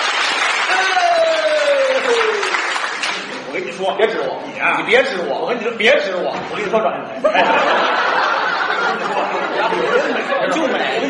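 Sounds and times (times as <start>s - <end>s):
audience applause at a comic crosstalk performance: 0.0s - 3.5s
speech: 3.8s - 7.9s, 8.9s - 11.0s
laughter: 7.1s - 11.0s.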